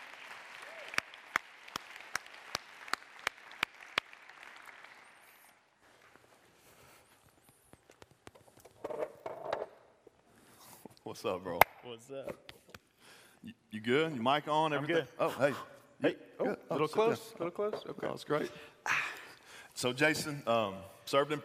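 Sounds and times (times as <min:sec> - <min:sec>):
audience applauding to welcome a speaker to the stage: 0:00.0 - 0:05.8
speech: 0:11.1 - 0:12.5, 0:13.7 - 0:18.7, 0:19.8 - 0:21.4.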